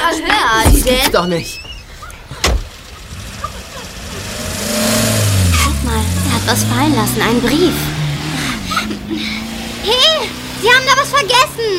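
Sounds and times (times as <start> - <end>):
speech: 0.2 - 1.7, 6.4 - 8.0, 8.8 - 11.7
laughter: 2.0 - 4.5, 5.5 - 10.5
car engine revving: 2.0 - 11.7
sharp thud: 2.3 - 2.8.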